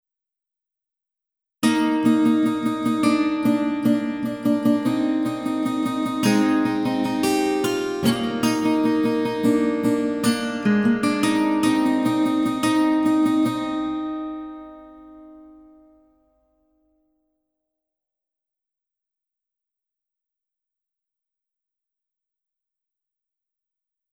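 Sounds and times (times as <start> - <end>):
guitar: 1.6 - 16.4.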